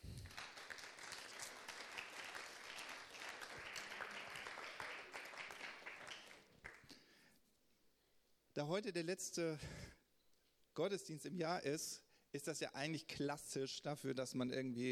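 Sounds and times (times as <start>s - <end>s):
crowd clapping in a large room: 0.0s - 7.0s
speech: 8.6s - 10.0s, 10.8s - 14.9s.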